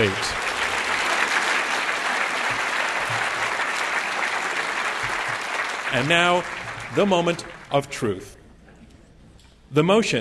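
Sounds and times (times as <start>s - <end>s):
round of applause: 0.0s - 8.0s
speech: 5.9s - 8.4s, 9.7s - 10.1s.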